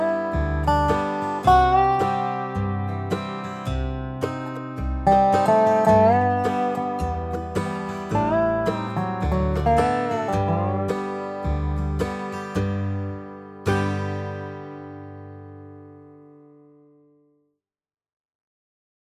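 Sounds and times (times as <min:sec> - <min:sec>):
backing track: 0:00.0 - 0:14.7
Dobro playing a basic melody: 0:00.0 - 0:16.1.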